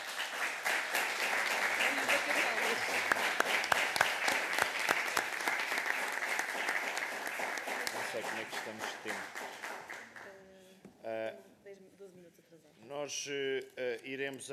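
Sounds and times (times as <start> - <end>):
audience applause: 0.0 - 10.3
speech: 14.0 - 14.5.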